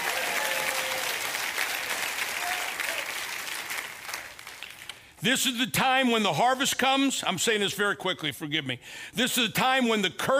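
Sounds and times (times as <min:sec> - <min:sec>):
audience applause: 0:00.0 - 0:04.9
speech: 0:05.2 - 0:10.3.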